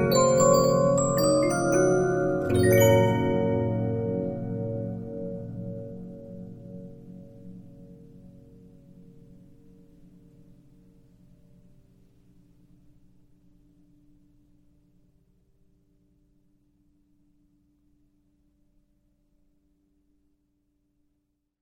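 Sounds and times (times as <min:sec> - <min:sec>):
Regina 15-inch disc music box: 0:00.0 - 0:05.9.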